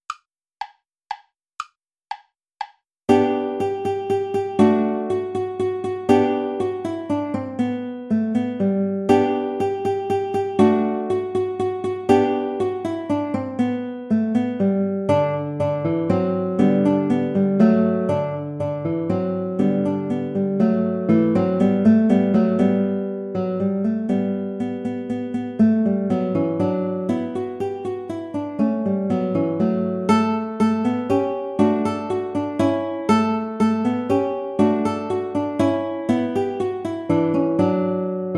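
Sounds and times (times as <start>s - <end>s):
play-along backing track without guitar: 0.0s - 38.3s.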